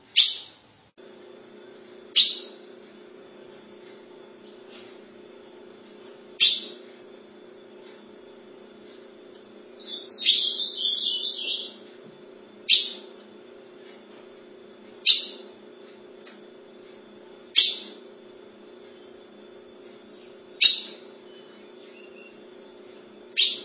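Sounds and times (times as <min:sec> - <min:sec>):
ultramarine grosbeak song and calls: 0:00.2 - 0:00.6, 0:02.2 - 0:02.6, 0:06.4 - 0:06.8, 0:09.8 - 0:11.8, 0:12.7 - 0:13.1, 0:15.0 - 0:15.5, 0:17.6 - 0:18.0, 0:20.2 - 0:22.4, 0:23.4 - 0:23.6
low hum: 0:01.0 - 0:23.6.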